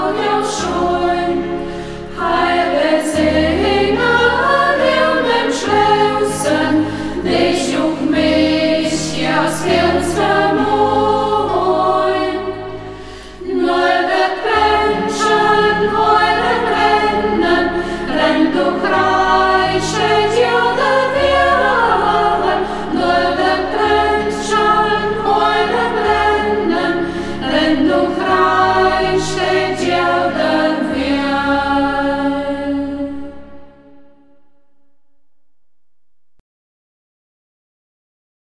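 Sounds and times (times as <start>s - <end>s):
choir singing in local dialect: 0.0s - 34.6s.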